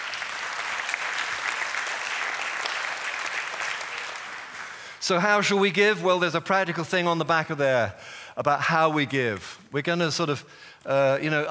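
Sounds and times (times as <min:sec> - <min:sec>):
audience applause: 0:00.0 - 0:05.0
speech: 0:05.1 - 0:11.4.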